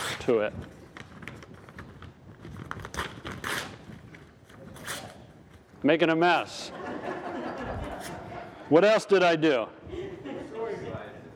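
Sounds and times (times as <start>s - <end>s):
sheet of paper being torn into pieces: 0.0s - 0.4s, 2.6s - 3.9s, 4.7s - 5.3s
speech: 0.2s - 0.8s, 5.8s - 7.1s, 8.7s - 10.0s
laughter: 6.5s - 8.8s, 9.8s - 11.2s.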